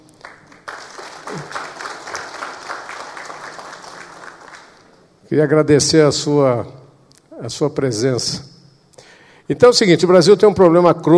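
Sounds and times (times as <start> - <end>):
audience applause: 0.2 - 5.0
speech: 5.3 - 6.8, 7.4 - 8.5, 9.5 - 11.1.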